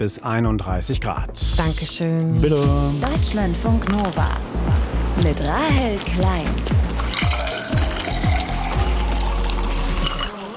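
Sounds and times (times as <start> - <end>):
speech: 0.0 - 6.9
cold drink poured over ice cubes: 7.0 - 10.5.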